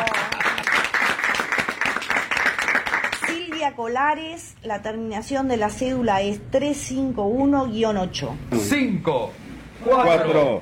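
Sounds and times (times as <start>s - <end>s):
audience applause: 0.0s - 3.6s
speech: 3.8s - 10.6s.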